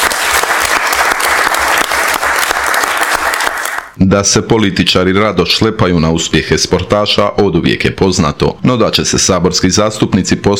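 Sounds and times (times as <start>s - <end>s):
government ministers applauding at a cabinet session for the national football team: 0.0s - 4.0s
speech: 4.1s - 10.5s.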